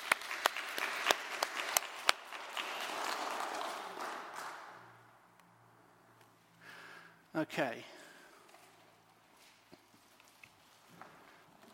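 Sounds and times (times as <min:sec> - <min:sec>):
audience applause: 0:00.0 - 0:05.0
speech: 0:07.4 - 0:08.0.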